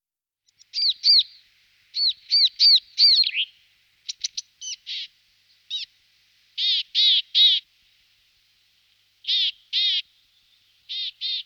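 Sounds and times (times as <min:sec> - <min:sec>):
grey-headed chickadee Poecile cinctus calls: 0:00.5 - 0:05.9, 0:06.6 - 0:07.6, 0:09.2 - 0:10.0, 0:10.9 - 0:11.4.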